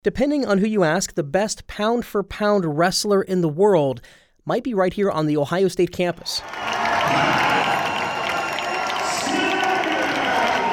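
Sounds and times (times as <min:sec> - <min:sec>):
speech: 0:00.0 - 0:07.4
arena crowd cheering Olympic wrestling gold at the 2016 Rio Games: 0:06.4 - 0:10.7.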